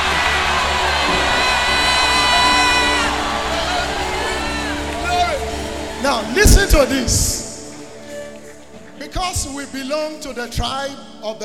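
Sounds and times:
audience shouting hallelujah: 0:00.0 - 0:06.9
speech: 0:06.1 - 0:07.4, 0:09.3 - 0:11.4.

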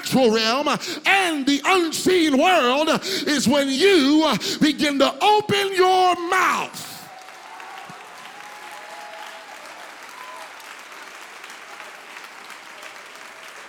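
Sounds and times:
speech: 0:00.1 - 0:06.9
audience clapping hands: 0:05.2 - 0:13.6.

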